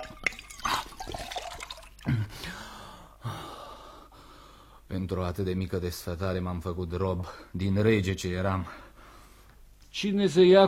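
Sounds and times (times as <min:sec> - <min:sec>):
person drinking water from a bucket: 0:00.0 - 0:02.4
speech: 0:04.9 - 0:08.8, 0:10.0 - 0:10.6.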